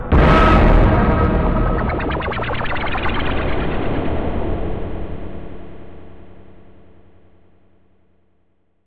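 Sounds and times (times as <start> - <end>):
psychedelic space music: 0.1 - 6.8.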